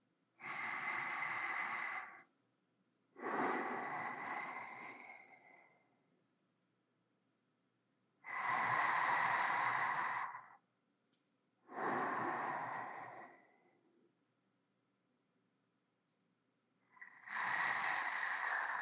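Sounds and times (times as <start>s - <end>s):
sleeping breath: 0.4s - 2.3s, 3.2s - 6.0s, 8.2s - 10.6s, 11.7s - 13.9s, 16.9s - 18.8s.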